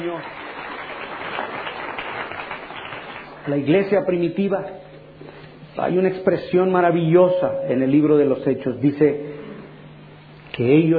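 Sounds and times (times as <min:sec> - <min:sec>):
congregation applause at a church service in Madrid: 0:00.0 - 0:03.7
speech: 0:00.1 - 0:00.4, 0:03.4 - 0:04.8, 0:05.8 - 0:09.3, 0:10.6 - 0:10.9.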